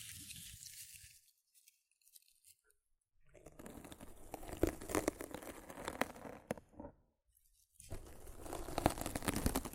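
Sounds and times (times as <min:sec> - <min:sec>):
rough scratching and brushing against a microphone: 0:03.3 - 0:06.9, 0:07.9 - 0:09.7.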